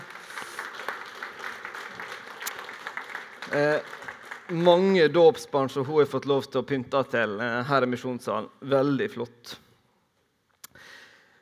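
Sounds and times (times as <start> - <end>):
audience applause: 0.0 - 5.2
speech: 3.5 - 9.6.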